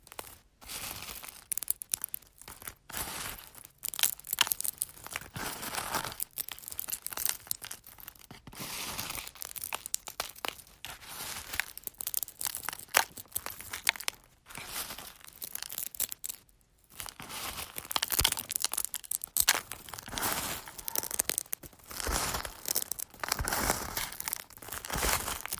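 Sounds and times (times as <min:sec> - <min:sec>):
crunching eggs: 0:01.0 - 0:08.4, 0:09.0 - 0:25.5.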